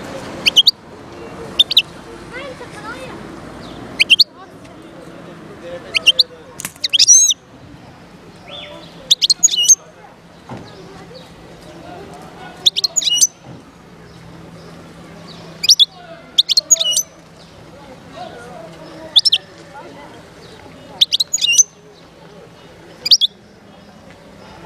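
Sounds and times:
wild European goldfinch singing: 0.4 - 0.7, 3.6 - 4.3, 5.9 - 7.4, 8.4 - 9.8, 12.6 - 13.4, 15.3 - 17.6, 18.8 - 19.5, 20.4 - 21.8, 23.0 - 23.4.

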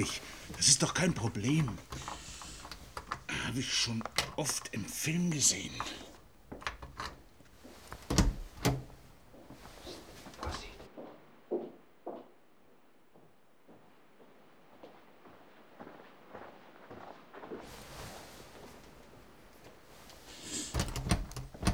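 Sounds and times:
speech: 0.0 - 2.1, 3.4 - 6.1
someone working at a locked door trying to open it: 0.0 - 10.9, 17.7 - 21.7
short metallic taps and knocks: 0.1 - 4.7, 5.7 - 10.8, 20.6 - 21.7.

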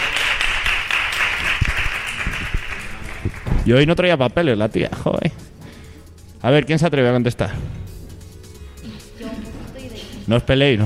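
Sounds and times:
audience applause: 0.0 - 3.5
speech: 3.7 - 5.4, 6.4 - 7.8, 10.3 - 10.8.

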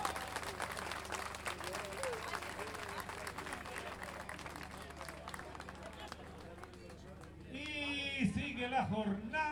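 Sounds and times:
audience applause: 0.0 - 7.5
speech: 8.6 - 9.4.

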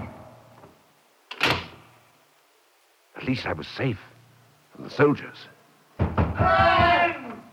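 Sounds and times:
heavy oak door slamming shut: 1.3 - 1.8
speech: 3.2 - 4.1, 4.8 - 5.6, 6.4 - 7.2.

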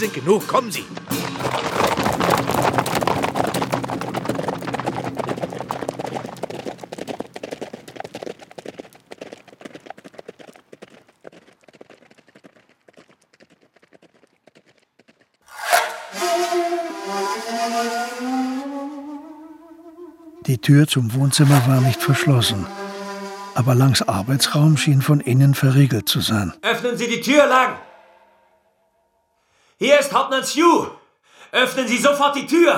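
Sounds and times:
speech: 0.0 - 1.7, 20.6 - 22.8, 23.6 - 27.8, 29.8 - 32.7
horses galloping: 0.6 - 15.5, 20.4 - 23.0, 23.6 - 26.6
loud harmonic cry: 15.5 - 20.5, 21.4 - 24.8.

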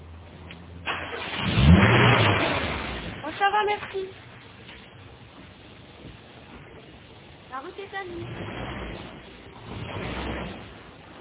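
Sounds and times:
car engine starting and revving: 0.0 - 3.6, 8.0 - 11.1
speech: 3.6 - 4.3, 7.9 - 8.7.

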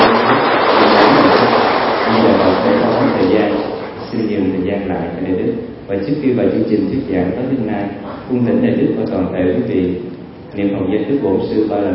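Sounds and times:
audience applause: 0.0 - 4.4
speech: 5.9 - 11.9.

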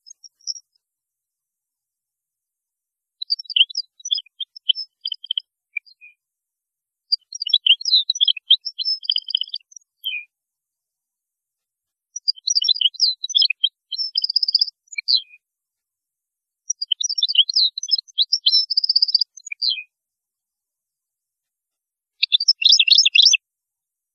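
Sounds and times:
European goldfinch song: 0.0 - 0.8, 3.2 - 6.2, 7.1 - 10.3, 12.1 - 15.4, 16.7 - 20.0, 22.2 - 23.4.

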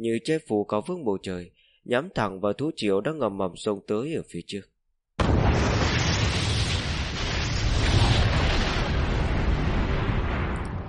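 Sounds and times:
speech: 0.0 - 4.7
huge explosion sound effect: 5.2 - 10.8.

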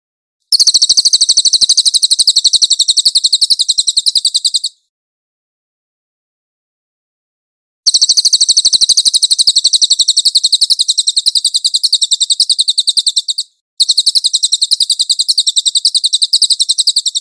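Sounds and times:
cililin bird singing shrill trill: 0.5 - 4.9, 7.9 - 17.2.

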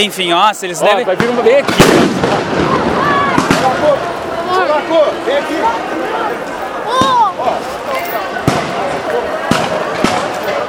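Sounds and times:
speech: 0.0 - 6.4
crowd noise in the parking lot of the Palácio das Araucárias: 0.0 - 10.6
murmuring voices: 0.0 - 10.6
rubber-bullet gun shots: 1.1 - 4.1, 8.4 - 10.6.

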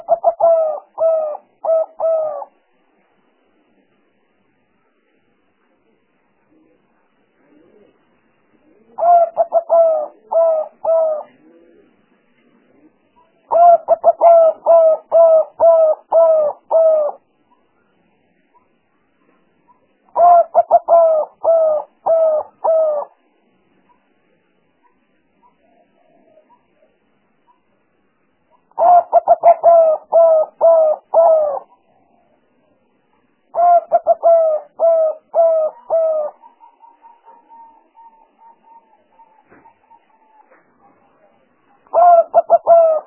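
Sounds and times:
spotted dove cooing: 0.0 - 2.6, 6.4 - 17.2, 19.7 - 23.3, 24.8 - 26.9, 28.5 - 32.4, 33.5 - 43.0.

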